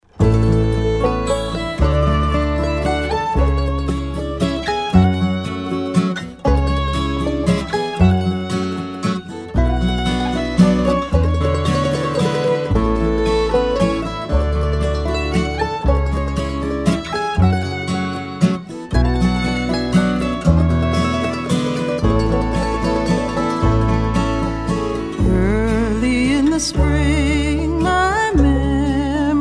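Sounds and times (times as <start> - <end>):
bluegrass waltz: 0.1 - 29.4.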